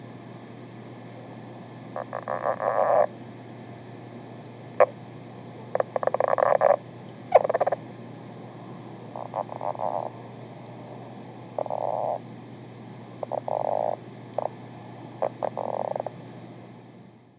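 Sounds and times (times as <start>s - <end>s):
low hum: 0.0s - 17.3s
lowland leopard frog calling: 1.9s - 3.1s, 4.8s - 5.0s, 5.7s - 7.8s, 9.2s - 10.2s, 11.5s - 12.2s, 13.2s - 14.6s, 15.2s - 16.2s.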